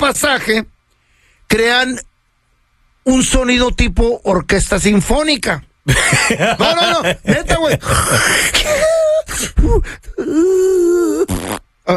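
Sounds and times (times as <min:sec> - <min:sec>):
speech: 0:00.1 - 0:00.7, 0:01.5 - 0:02.1, 0:03.0 - 0:11.9
laughter: 0:05.9 - 0:09.2
person imitating snoring: 0:10.2 - 0:11.9.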